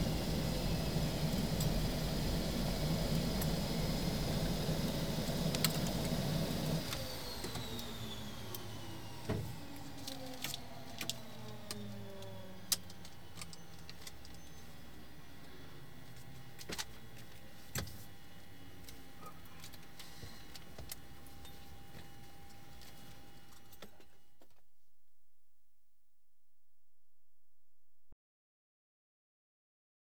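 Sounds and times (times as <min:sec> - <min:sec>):
aircraft landing: 0:00.0 - 0:09.8
aircraft engine switching off: 0:00.0 - 0:14.6
aircraft taxiing: 0:00.0 - 0:16.4.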